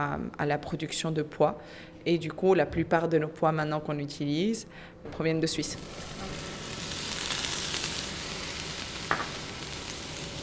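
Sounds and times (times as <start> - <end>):
speech: 0.0 - 6.5
oil sizzling in a frying pan: 5.7 - 10.4.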